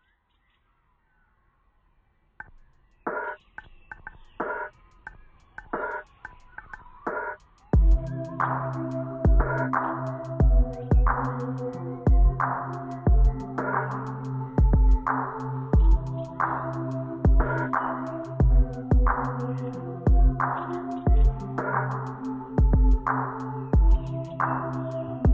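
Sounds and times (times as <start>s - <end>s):
uplifting beat: 5.7s - 25.3s.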